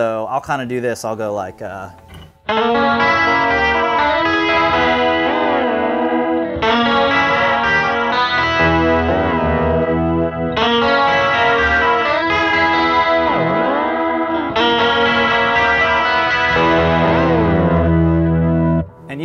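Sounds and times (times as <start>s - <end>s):
speech: 0.0s - 3.4s
guitar chords ringing out through delay pedal: 2.4s - 19.1s.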